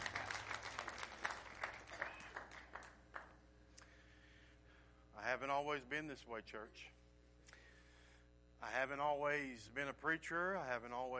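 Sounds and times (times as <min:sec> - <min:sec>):
crowd clapping: 0:00.0 - 0:03.4
speech: 0:05.2 - 0:07.0, 0:08.6 - 0:11.1.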